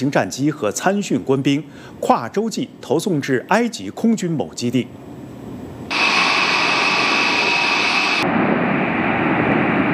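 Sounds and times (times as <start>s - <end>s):
speech: 0.0s - 5.1s
jet aircraft engine drone during flight: 4.9s - 9.9s.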